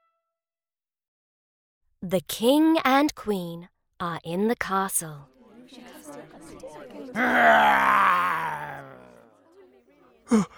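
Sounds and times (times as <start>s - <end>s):
speech: 2.0s - 8.3s, 10.3s - 10.5s
low murmuring: 5.9s - 9.4s
dragon groaning behind a castle wall: 7.2s - 9.3s.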